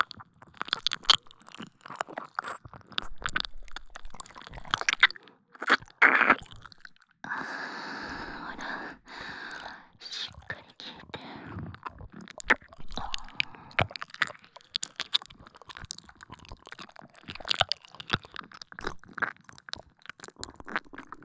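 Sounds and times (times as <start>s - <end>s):
ear licking: 0.0s - 10.6s, 11.7s - 15.2s
handjob, blowjob and cowgirl sex: 4.2s - 14.0s.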